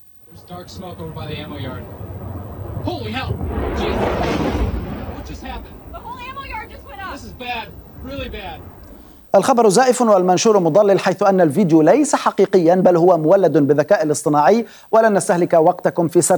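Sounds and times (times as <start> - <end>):
missile strike explosion in an AI-generated video: 0.3 - 10.6
speech: 0.5 - 2.2, 2.8 - 16.3.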